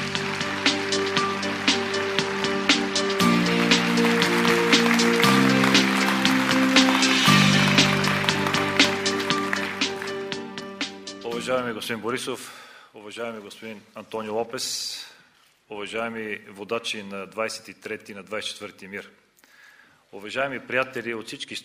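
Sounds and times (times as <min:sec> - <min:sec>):
crowd clapping: 0:00.0 - 0:11.4
sustained music chords: 0:00.0 - 0:12.0
speech: 0:11.5 - 0:14.9, 0:15.7 - 0:19.2, 0:20.1 - 0:21.6.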